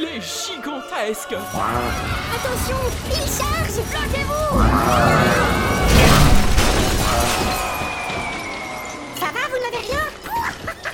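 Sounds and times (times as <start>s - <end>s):
speech: 0.0s - 6.4s
tinkling glass shards and debris: 3.9s - 9.7s
bay window glass shattering: 4.6s - 9.3s.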